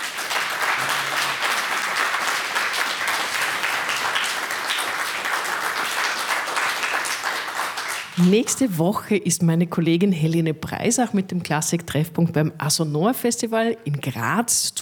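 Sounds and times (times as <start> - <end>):
audience applause: 0.0 - 8.5
speech: 8.2 - 14.8.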